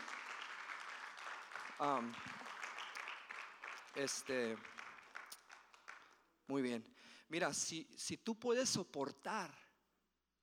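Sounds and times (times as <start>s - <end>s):
audience applause: 0.0s - 6.2s
speech: 1.8s - 2.5s, 3.9s - 4.8s, 6.5s - 9.6s.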